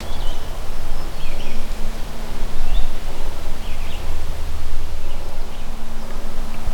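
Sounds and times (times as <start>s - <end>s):
birds: 0.0s - 6.7s.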